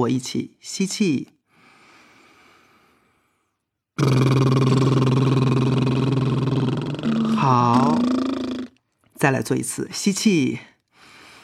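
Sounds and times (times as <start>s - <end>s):
speech: 0.0s - 1.4s, 4.0s - 4.5s, 9.2s - 10.7s
voiced lip trill vocal warm-up: 4.0s - 8.8s.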